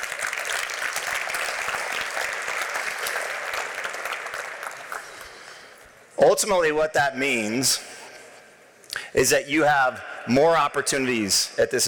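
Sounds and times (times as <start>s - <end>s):
crowd clapping: 0.0s - 5.8s
speech: 6.2s - 7.9s, 9.2s - 11.8s.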